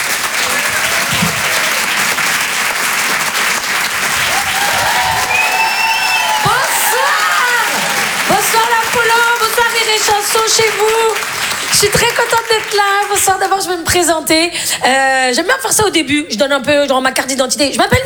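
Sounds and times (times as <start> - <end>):
audience applauding at Apollo Théâtre comedy club in Paris: 0.0 - 14.1
audience cheers and whoops at Apollo Théâtre comedy club in Paris: 0.2 - 2.4, 4.0 - 11.3
speech: 9.9 - 18.0.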